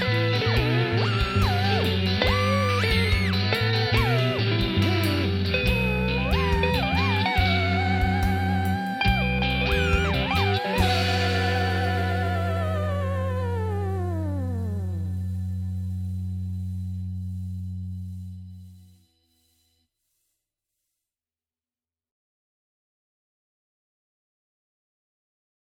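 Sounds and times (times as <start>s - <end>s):
theremin: 0.0s - 17.2s.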